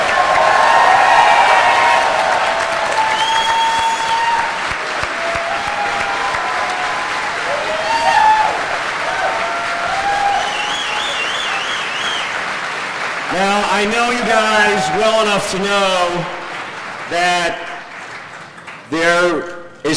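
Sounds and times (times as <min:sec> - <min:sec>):
audience applause: 0:00.0 - 0:19.4
speech: 0:13.8 - 0:16.4, 0:17.1 - 0:17.6, 0:18.9 - 0:19.9.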